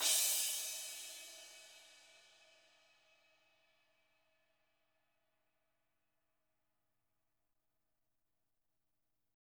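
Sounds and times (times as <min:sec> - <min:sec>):
warm fat drum kit: 0:00.0 - 0:01.8.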